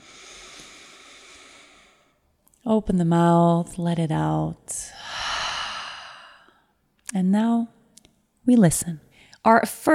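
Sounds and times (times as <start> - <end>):
deep breath in during a guided group breathing exercise: 0.0 - 2.2, 4.9 - 6.8
speech: 2.7 - 5.0, 7.1 - 7.8, 8.4 - 9.9.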